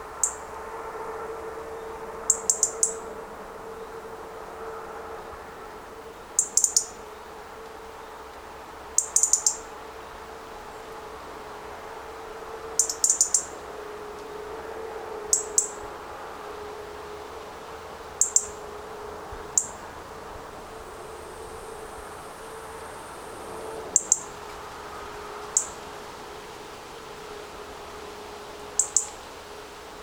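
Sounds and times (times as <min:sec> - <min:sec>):
low hum: 0:00.0 - 0:30.0
European robin ticking calls: 0:00.1 - 0:00.5, 0:02.3 - 0:03.0, 0:06.2 - 0:09.8, 0:12.8 - 0:13.6, 0:15.3 - 0:15.9, 0:18.0 - 0:18.6, 0:19.5 - 0:19.9, 0:23.9 - 0:24.4, 0:25.4 - 0:25.8, 0:28.6 - 0:29.2.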